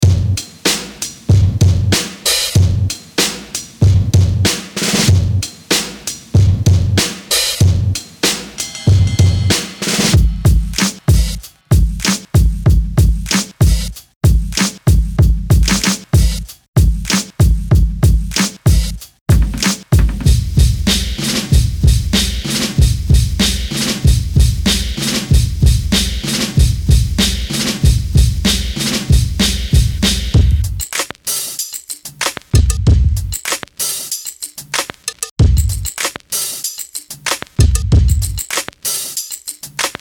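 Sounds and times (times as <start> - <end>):
vinyl drum kit: 0.0 - 40.0.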